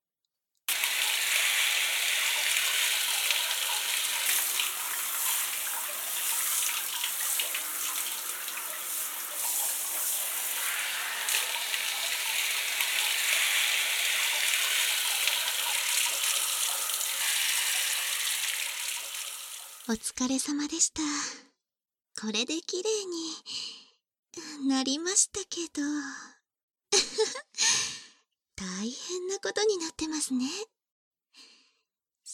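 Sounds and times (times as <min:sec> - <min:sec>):
running water from a tap or shower rinsing something off: 0:00.7 - 0:20.1
speech: 0:19.9 - 0:21.3, 0:22.2 - 0:23.8, 0:24.4 - 0:26.4, 0:28.8 - 0:30.7.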